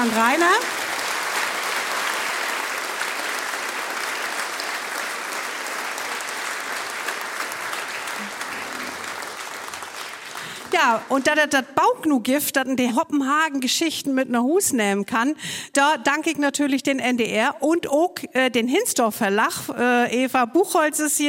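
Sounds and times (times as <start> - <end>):
speech: 0.0 - 0.8, 10.8 - 21.2
crowd clapping: 0.0 - 11.6.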